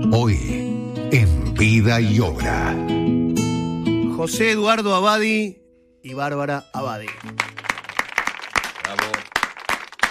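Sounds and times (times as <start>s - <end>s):
speech: 0.1s - 1.0s, 1.7s - 3.2s, 4.2s - 7.5s
brief uneven applause: 7.0s - 10.0s.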